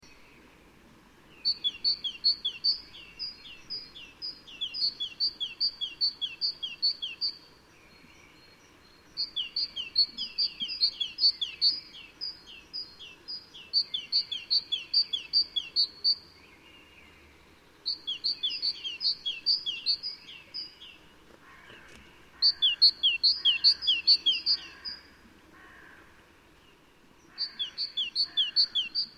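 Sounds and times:
faint hiss: 0:00.0 - 0:29.1
great tit calling: 0:01.4 - 0:07.4, 0:09.0 - 0:16.3, 0:17.8 - 0:26.0, 0:27.2 - 0:29.1.

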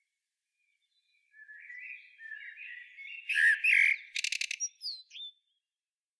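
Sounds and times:
common blackbird singing: 0:00.8 - 0:05.4.

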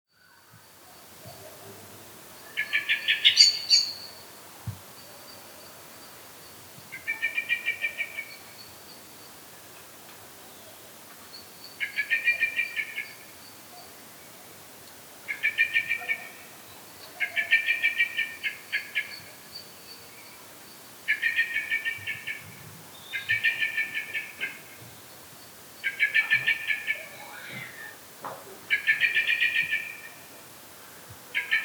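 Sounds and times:
faint hiss: 0:00.2 - 0:31.6
common blackbird chattering: 0:03.0 - 0:04.0.

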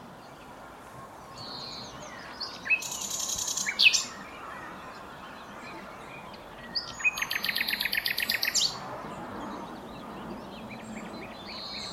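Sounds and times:
Common nightingale singing: 0:00.0 - 0:11.9.

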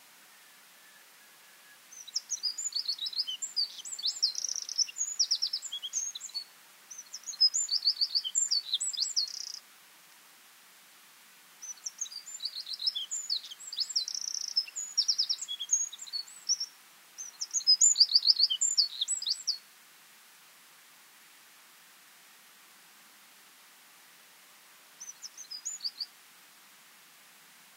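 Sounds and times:
Eurasian wren Troglodytes troglodytes singing: 0:01.9 - 0:09.6, 0:11.6 - 0:19.6, 0:25.0 - 0:26.1.

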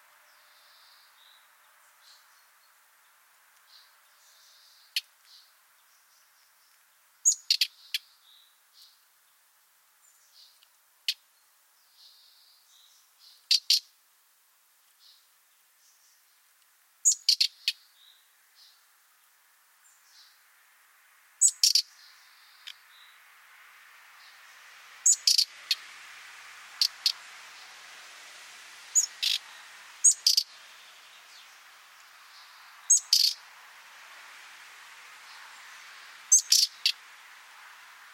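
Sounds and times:
common nightingale clicking calls: 0:00.0 - 0:09.5, 0:10.1 - 0:14.0, 0:14.8 - 0:18.9, 0:21.4 - 0:38.1
soft hiss: 0:00.0 - 0:38.1.

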